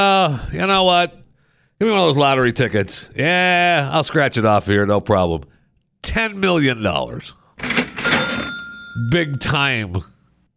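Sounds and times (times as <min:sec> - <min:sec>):
speech: 0:00.0 - 0:01.2, 0:01.8 - 0:07.8, 0:09.0 - 0:10.2
cash register drawer opening: 0:07.6 - 0:09.0.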